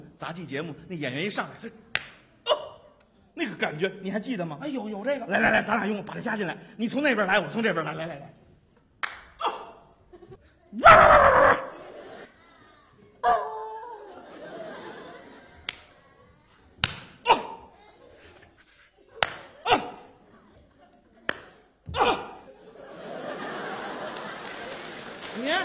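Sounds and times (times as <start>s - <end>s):
speech: 0.2s - 1.9s, 3.4s - 8.4s
laughter: 9.4s - 25.6s
audience applause: 23.1s - 25.6s.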